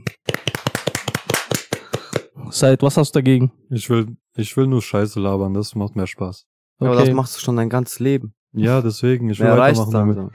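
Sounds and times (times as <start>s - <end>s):
hands clapping: 0.0s - 2.4s
speech: 2.5s - 10.3s.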